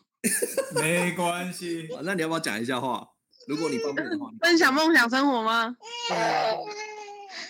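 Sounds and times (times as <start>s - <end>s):
laughter: 0.2s - 2.3s
speech: 0.2s - 6.9s
child crying: 3.4s - 4.1s, 5.8s - 7.4s.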